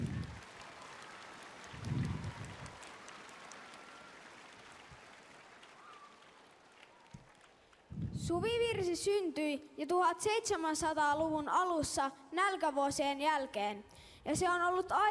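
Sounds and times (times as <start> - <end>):
choir and audience applauding outdoors: 0.0 - 7.9
speech: 8.3 - 15.0.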